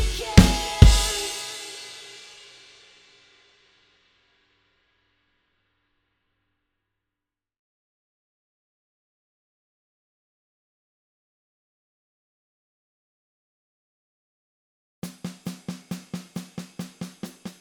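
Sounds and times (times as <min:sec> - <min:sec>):
drums: 0:00.0 - 0:03.2, 0:15.0 - 0:17.5.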